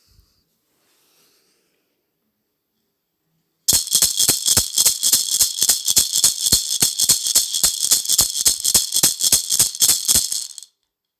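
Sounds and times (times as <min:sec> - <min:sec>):
rumba maracas: 0:03.7 - 0:10.7.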